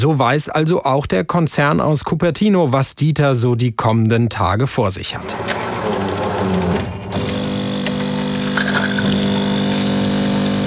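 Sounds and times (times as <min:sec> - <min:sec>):
speech: 0:00.0 - 0:06.8
app-controlled internet-connected coffee machine brewing cappuccino into a cup: 0:05.2 - 0:10.6.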